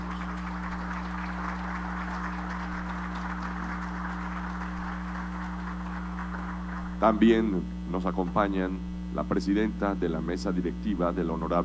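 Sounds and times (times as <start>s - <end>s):
crowd applause: 0.0s - 7.3s
low electrical hum: 0.0s - 11.6s
speech: 7.0s - 11.6s.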